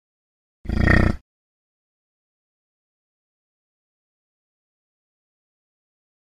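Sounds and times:
buffalo snort: 0:00.7 - 0:01.2.

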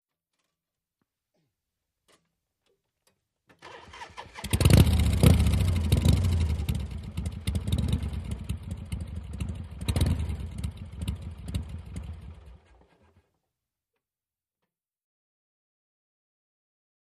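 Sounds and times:
Harley motorcycle engine running rough: 0:04.4 - 0:13.2.

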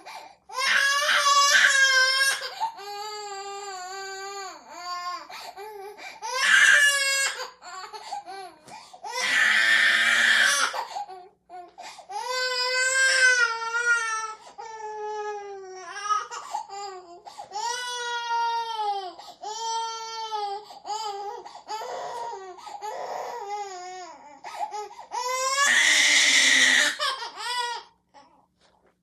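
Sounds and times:
twelve month old baby girl crying and screaming: 0:00.5 - 0:27.9.

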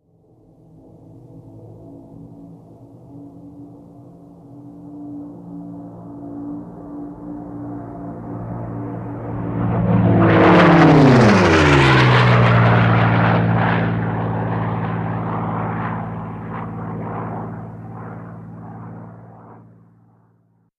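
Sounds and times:
P-51 propeller plane passing by fast: 0:04.8 - 0:20.6.

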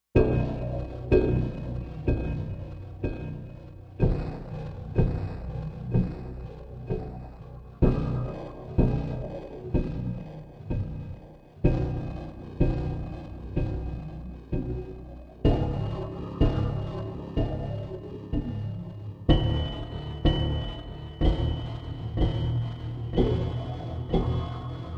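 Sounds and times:
machine: 0:00.2 - 0:24.9
rhythmic beat: 0:05.0 - 0:24.9.

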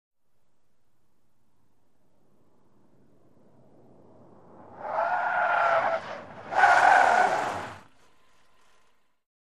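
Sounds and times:
small compact car accelerating: 0:02.1 - 0:09.2
small compact car tyres skidding: 0:02.3 - 0:09.2.

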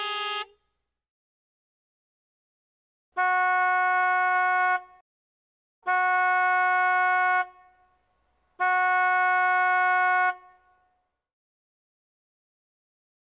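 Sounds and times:
American car horn: 0:00.0 - 0:00.7, 0:03.2 - 0:05.0, 0:05.8 - 0:08.0, 0:08.6 - 0:11.0.

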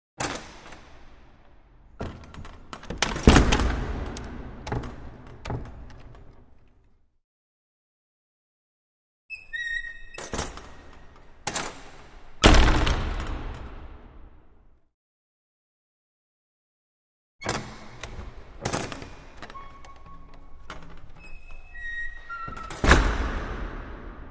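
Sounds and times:
large wooden front doors closing in reverberant interior: 0:00.2 - 0:07.0, 0:09.3 - 0:14.6, 0:17.4 - 0:24.2.

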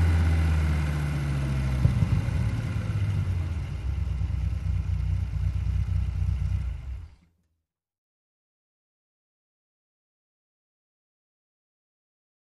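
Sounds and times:
sports car driving slowly at 45 mph: 0:00.0 - 0:07.3.

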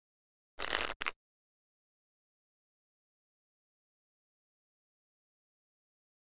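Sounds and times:
deck of cards shuffling: 0:00.6 - 0:01.2.

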